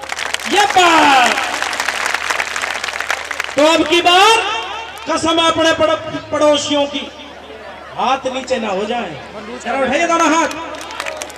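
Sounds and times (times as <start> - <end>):
crowd clapping: 0.0 - 5.3, 10.2 - 11.3
speech: 3.7 - 7.2, 8.0 - 10.7.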